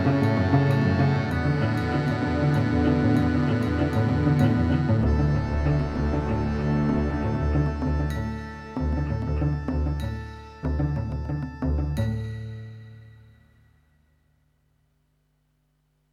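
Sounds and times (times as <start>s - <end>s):
cello: 0.0s - 12.2s.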